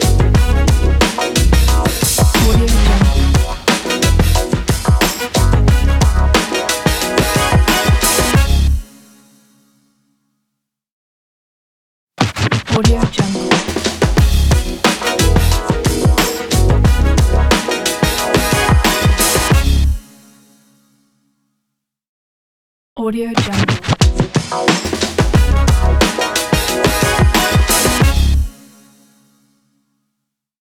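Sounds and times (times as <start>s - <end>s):
downtown stomp music: 0.0s - 8.7s, 12.2s - 19.9s, 23.4s - 28.5s.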